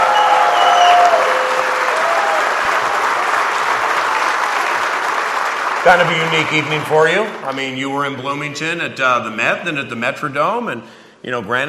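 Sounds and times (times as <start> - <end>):
faint whistles or cheers: 0.0 - 2.6
large crowd applauding: 0.0 - 8.2
speech: 5.8 - 11.6.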